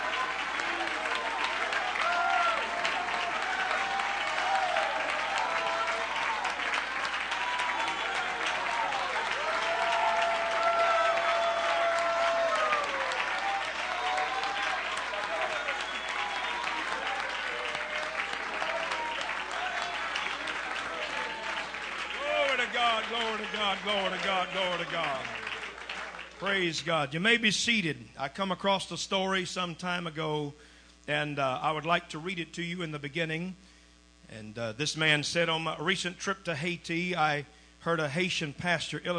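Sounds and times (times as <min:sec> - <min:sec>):
voices shouting and cheering: 0:00.0 - 0:25.6
large crowd clapping: 0:00.0 - 0:26.9
speech: 0:23.7 - 0:25.3, 0:26.4 - 0:33.6, 0:34.3 - 0:39.1.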